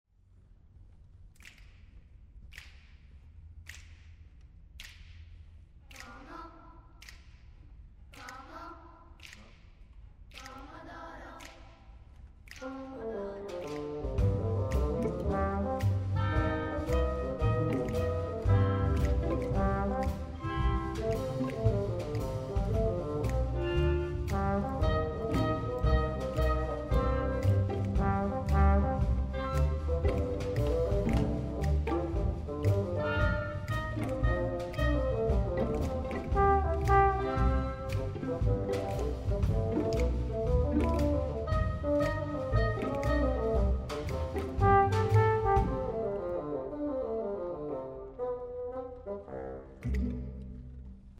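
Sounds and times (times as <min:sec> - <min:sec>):
blues music: 0:13.6 - 0:51.1.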